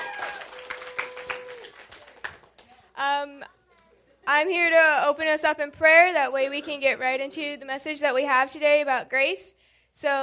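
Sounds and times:
audience applause: 0:00.0 - 0:02.8
speech: 0:04.3 - 0:10.2.

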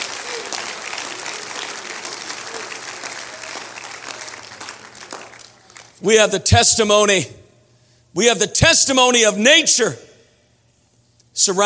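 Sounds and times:
audience clapping: 0:00.0 - 0:06.0
speech: 0:06.0 - 0:07.4, 0:08.2 - 0:10.1, 0:11.4 - 0:11.6.

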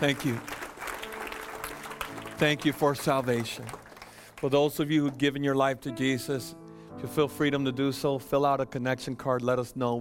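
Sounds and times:
speech: 0:00.0 - 0:00.6, 0:02.4 - 0:09.9
audience clapping hands: 0:00.0 - 0:05.8.

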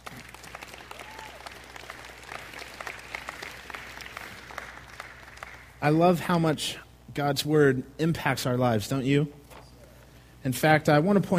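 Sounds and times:
crowd applauding: 0:00.0 - 0:05.8
speech: 0:05.8 - 0:09.4, 0:10.4 - 0:11.3.

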